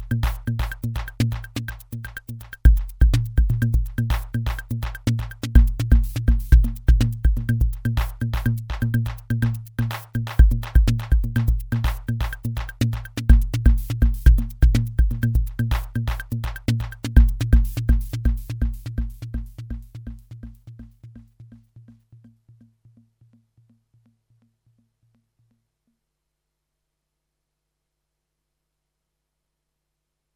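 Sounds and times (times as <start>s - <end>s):
Korg Volca synth polyrhythm: 0.0s - 2.3s, 3.0s - 20.5s.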